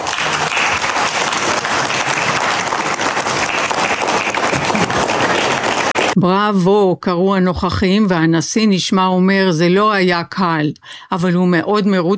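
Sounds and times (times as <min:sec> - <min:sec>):
applause at a formal dinner: 0:00.0 - 0:06.2
speech: 0:06.2 - 0:12.1.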